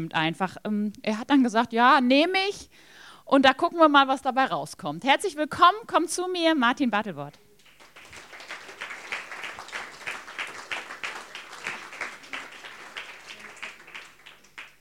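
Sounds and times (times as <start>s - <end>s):
speech: 0.0s - 7.4s
audience clapping: 7.6s - 14.7s.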